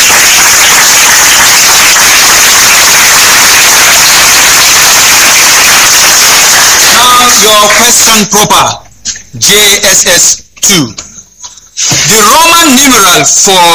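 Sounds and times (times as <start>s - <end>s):
round of applause: 0.0s - 7.7s
speech: 7.6s - 8.8s, 9.4s - 11.0s, 12.8s - 13.7s.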